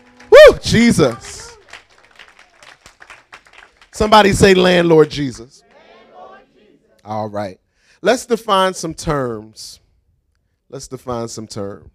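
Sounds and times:
crowd clapping hands in praise: 0.0 - 6.4
speech: 0.6 - 1.4, 4.0 - 5.6, 7.0 - 9.8, 10.7 - 11.9.

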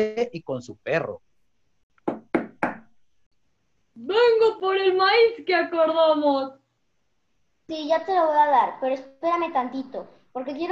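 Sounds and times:
speech: 0.0 - 1.3, 4.0 - 6.6, 7.7 - 10.6
knocking on a door: 2.0 - 2.9.

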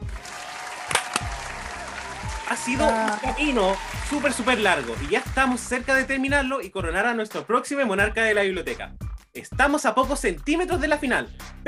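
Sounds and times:
crowd applauding: 0.0 - 6.4
speech: 2.5 - 11.6.

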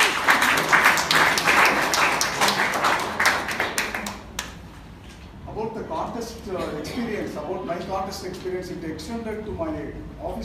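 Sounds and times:
audience applause: 0.0 - 4.5
speech: 6.5 - 10.4.

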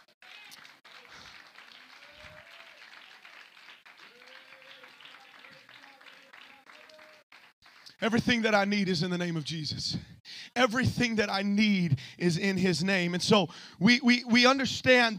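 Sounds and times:
audience clapping hands: 0.0 - 9.2
speech: 8.0 - 15.1.

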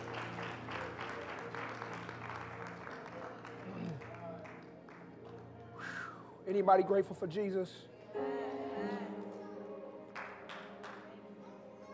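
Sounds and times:
audience clapping: 0.0 - 5.8, 10.1 - 11.1
faint crowd voices: 0.0 - 11.9
speech: 6.5 - 8.3.

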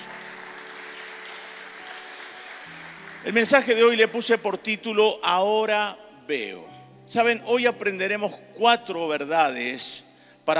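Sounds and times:
applause: 0.0 - 4.8
speech: 3.2 - 10.5.

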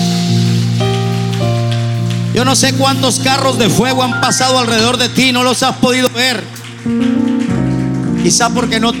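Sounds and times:
audience applauding: 0.2 - 8.9
speech: 2.4 - 7.4, 8.2 - 8.9.

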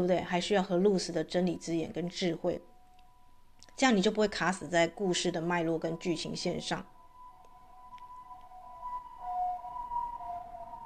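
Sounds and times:
speech: 0.0 - 2.7, 3.8 - 6.9
ambulance siren passing by: 5.4 - 10.8.

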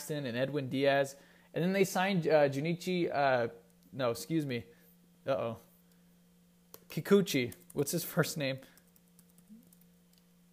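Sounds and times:
low steady hum: 0.0 - 10.5
speech: 0.1 - 5.7, 6.9 - 8.7
soft typing on a computer keyboard: 6.7 - 7.9, 8.7 - 10.2.

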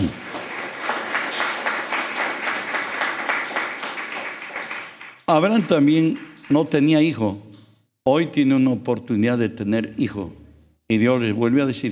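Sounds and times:
audience applauding: 0.0 - 6.8
speech: 5.3 - 11.9.

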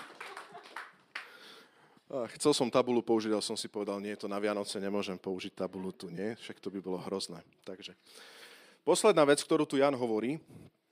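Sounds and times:
audience applause: 0.0 - 1.4
speech: 2.1 - 10.8.

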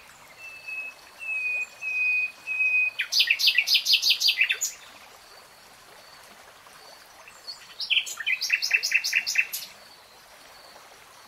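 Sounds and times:
nightingale song: 0.0 - 5.0, 7.2 - 10.8.

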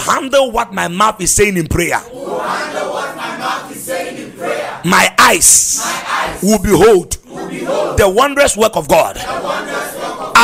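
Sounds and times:
speech: 0.1 - 2.8, 4.8 - 10.4
crowd shouting: 2.1 - 4.9, 5.8 - 6.6, 7.3 - 8.2, 9.2 - 10.4.

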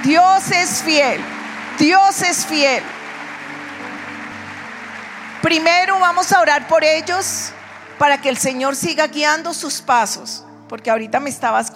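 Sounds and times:
speech: 0.0 - 3.0, 5.4 - 11.7
audience applause: 0.0 - 8.8.

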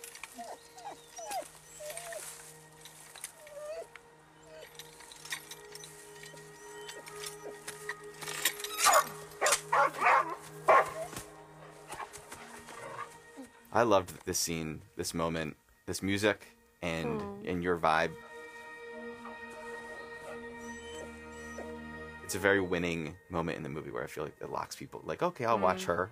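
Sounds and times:
dog whimpering with short high squeaky calls: 0.3 - 2.2, 3.4 - 4.7, 19.9 - 21.8
dog barking: 8.9 - 11.1
speech: 13.8 - 18.2, 22.3 - 26.0.

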